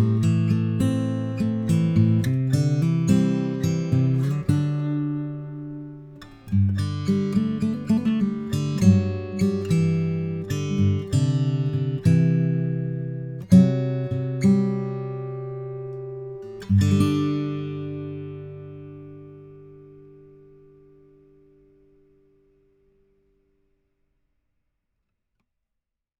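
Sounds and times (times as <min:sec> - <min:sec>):
acoustic guitar recorded with MXL V88 microphone: 0:00.0 - 0:23.8.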